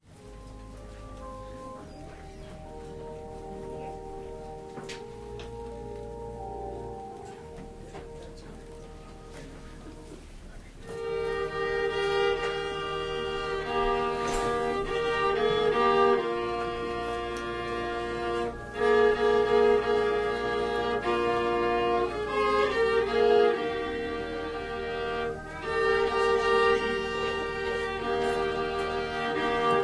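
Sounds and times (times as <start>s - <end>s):
organ playing a prelude: 0.0s - 29.8s
violin playing a prelude: 0.0s - 29.8s.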